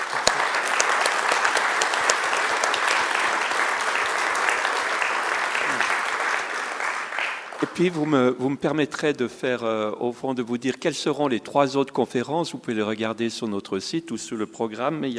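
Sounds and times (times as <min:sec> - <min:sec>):
audience applause for speakers: 0:00.0 - 0:08.2
speech: 0:07.8 - 0:15.1.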